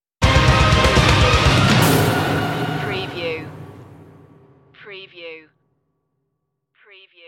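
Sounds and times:
dark music stinger: 0.2 - 4.7.

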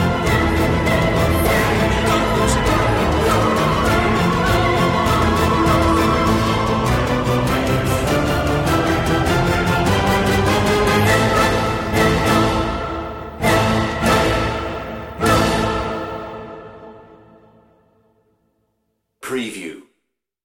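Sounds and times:
choir singing: 0.0 - 17.7
solo voice singing: 0.1 - 7.2.

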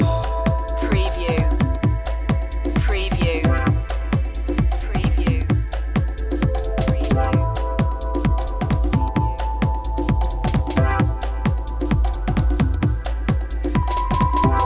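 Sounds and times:
beach life music loop: 0.0 - 14.6.

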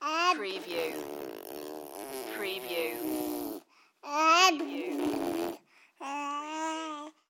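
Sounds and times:
baby blowing a raspberry: 0.1 - 3.9, 4.6 - 6.2.

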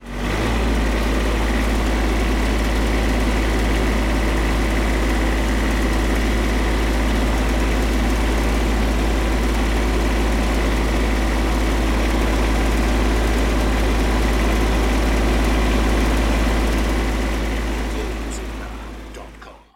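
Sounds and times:
diesel tractor driving, on-board perspective: 0.0 - 19.7.

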